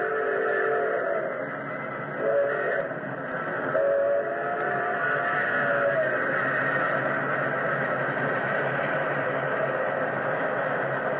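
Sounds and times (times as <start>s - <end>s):
shrill steam train whistle: 0.0s - 3.1s, 3.7s - 7.8s
express steam train roaring past: 0.0s - 11.1s.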